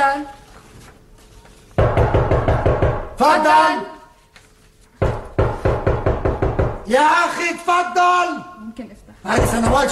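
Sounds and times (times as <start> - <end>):
loud rapid knocking on a door: 1.8 - 3.2, 5.0 - 6.9, 9.3 - 9.9
speech: 3.2 - 4.0, 6.9 - 9.9.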